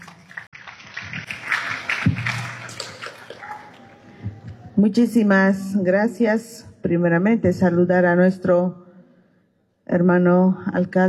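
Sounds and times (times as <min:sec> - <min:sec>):
audience applause: 0:01.2 - 0:03.8
speech: 0:04.8 - 0:08.8, 0:09.9 - 0:11.0.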